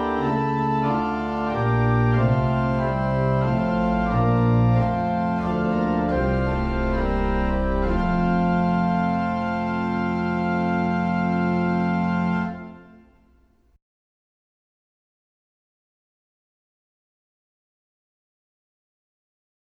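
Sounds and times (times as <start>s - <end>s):
organ playing a hymn: 0.0s - 13.2s.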